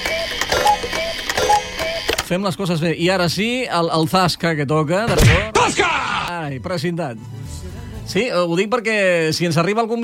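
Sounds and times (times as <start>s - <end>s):
cuckoo clock mechanism whirring: 0.0s - 2.2s
speech: 2.3s - 10.0s.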